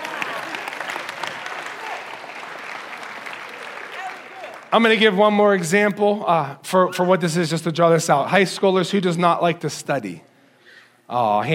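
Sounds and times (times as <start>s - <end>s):
audience applause: 0.0s - 5.2s
speech: 4.7s - 10.3s, 11.1s - 11.5s.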